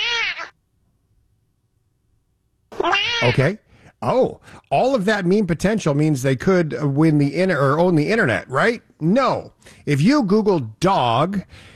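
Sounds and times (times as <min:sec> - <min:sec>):
cat meowing at a Ring doorbell camera: 0:00.0 - 0:00.6, 0:02.7 - 0:03.4
speech: 0:03.2 - 0:11.7.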